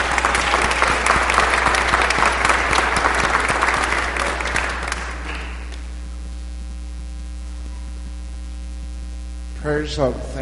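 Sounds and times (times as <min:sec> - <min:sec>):
audience applause: 0:00.0 - 0:05.8
speech: 0:09.8 - 0:10.4.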